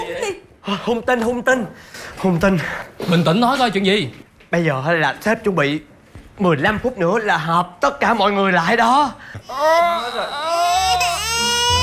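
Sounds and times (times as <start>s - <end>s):
speech: 0.2s - 11.0s
person ugly crying with a wailing sob: 9.4s - 11.8s.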